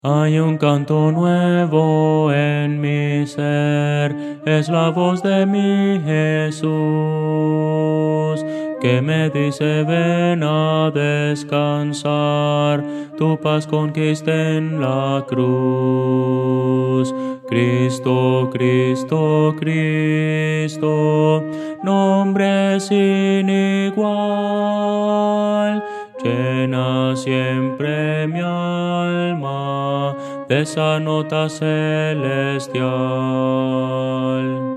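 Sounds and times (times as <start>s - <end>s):
contralto voice: 0.0s - 34.7s.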